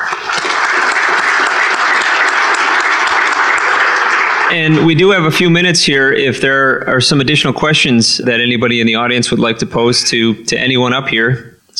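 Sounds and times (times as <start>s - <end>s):
audience applause: 0.0s - 5.5s
speech: 4.5s - 11.7s.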